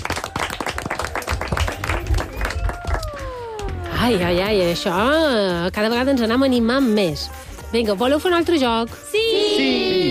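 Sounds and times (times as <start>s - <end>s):
group of children clapping loudly: 0.0s - 4.1s
speech: 4.0s - 9.8s.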